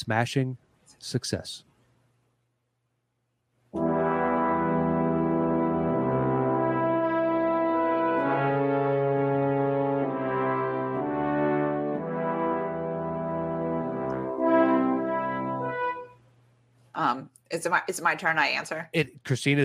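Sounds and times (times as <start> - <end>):
speech: 0.0 - 1.7, 17.2 - 19.6
movie theme opening notes on a brassy instrument: 3.8 - 16.2.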